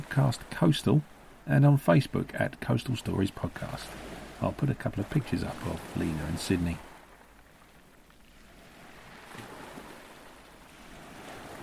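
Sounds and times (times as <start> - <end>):
sea waves on a beach: 0.0 - 11.6
speech: 0.2 - 6.9.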